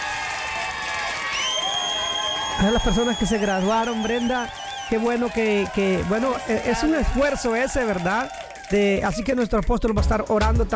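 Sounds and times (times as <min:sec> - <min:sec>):
church congregation applauding and cheering for graduates: 0:00.0 - 0:09.9
whoops and whistles: 0:01.2 - 0:05.2
speech: 0:02.6 - 0:10.7.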